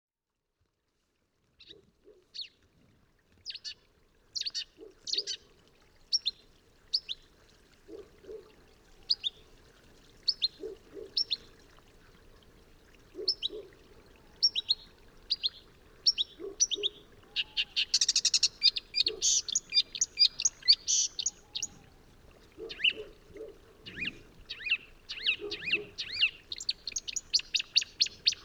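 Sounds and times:
marsh warbler song: 4.4 - 5.4, 6.1 - 7.3, 9.0 - 9.5, 10.2 - 11.6, 13.2 - 21.9, 22.6 - 28.4.

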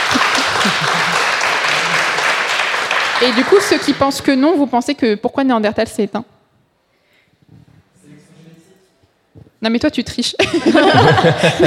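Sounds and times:
laughter: 0.0 - 2.2, 10.4 - 11.6
audience applause: 0.0 - 4.2
speech: 0.6 - 1.0, 3.2 - 6.4, 9.6 - 11.6.

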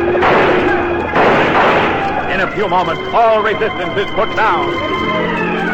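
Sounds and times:
gunfire volley: 0.0 - 2.6
speech: 2.4 - 5.6.

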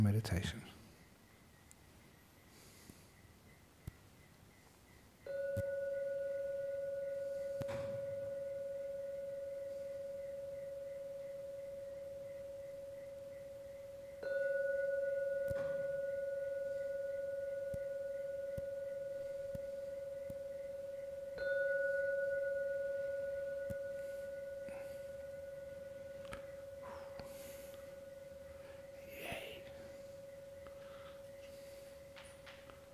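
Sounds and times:
gong ringing: 5.3 - 12.6, 14.2 - 32.9.

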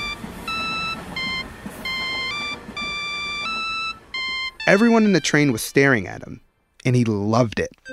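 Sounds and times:
custom monophonic mobile phone ringtone playing a song: 0.0 - 5.6
speech: 4.7 - 7.9.

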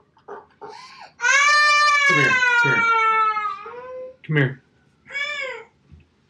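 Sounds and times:
young child whimpering and wailing: 0.7 - 4.2
speech: 2.1 - 3.0, 4.3 - 4.6.

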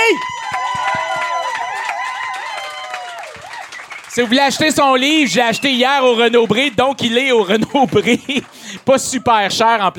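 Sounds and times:
cheering voices and whoops: 0.0 - 6.0
audience clapping: 0.0 - 9.8
speech: 4.2 - 9.9
laughter: 6.9 - 9.5.

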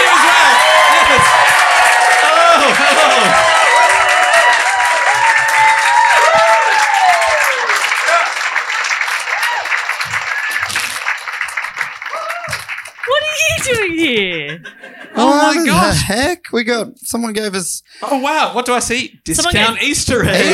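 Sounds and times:
crowd applauding: 0.0 - 14.2
laughter: 2.2 - 3.8, 13.1 - 16.0, 20.1 - 20.5
speech: 14.1 - 20.5.

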